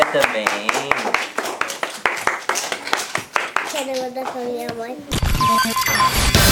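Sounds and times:
audience clapping: 0.0 - 4.0
speech: 0.1 - 0.8, 3.8 - 6.4.

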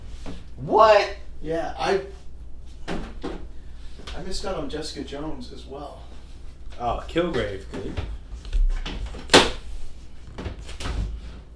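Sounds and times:
speech: 0.3 - 2.2, 4.2 - 6.1, 6.8 - 8.2
cabinet being opened: 7.7 - 11.5.

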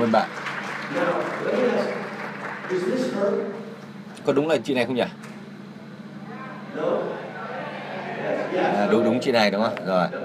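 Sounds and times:
speech: 0.0 - 2.0, 2.7 - 3.6, 4.2 - 5.3, 6.8 - 7.2, 8.2 - 10.2
audience applause: 0.0 - 3.5.

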